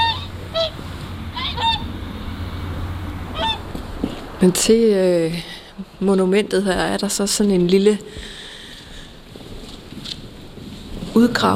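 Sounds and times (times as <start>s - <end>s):
flock of swans calling near the Jyske Ås monument in Denmark: 0.0s - 4.4s
steady low rumble: 0.0s - 11.2s
speech: 4.4s - 8.4s, 11.2s - 11.5s.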